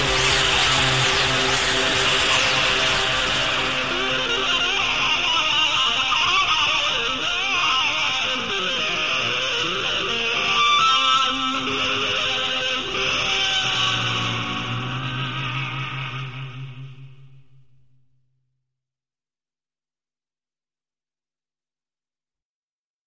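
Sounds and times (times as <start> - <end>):
electric guitar with echo waves: 0.0 - 18.0.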